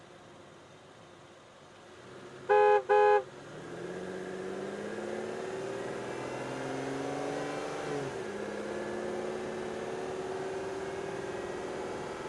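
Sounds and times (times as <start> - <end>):
Aston Martin DB9 driving and reversing: 1.5 - 12.2
Aston Martin DB9 horn: 2.5 - 3.3.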